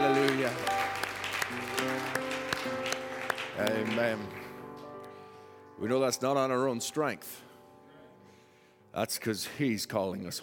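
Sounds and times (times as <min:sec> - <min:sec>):
audience clapping in a steady beat: 0:00.0 - 0:05.2
keyboard or organ chords: 0:00.0 - 0:08.4
speech: 0:03.8 - 0:04.4, 0:05.8 - 0:07.5, 0:09.0 - 0:10.4.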